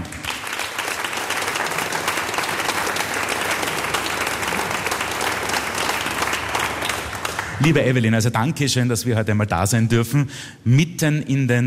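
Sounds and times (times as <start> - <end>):
audience applause: 0.0 - 7.8
speech: 7.6 - 11.6.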